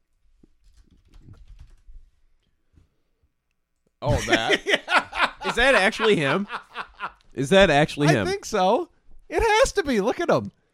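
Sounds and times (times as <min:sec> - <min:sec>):
typing on a computer keyboard: 0:00.6 - 0:01.9
speech: 0:04.0 - 0:04.8, 0:05.5 - 0:06.6, 0:07.4 - 0:10.6
laughter: 0:04.0 - 0:08.4.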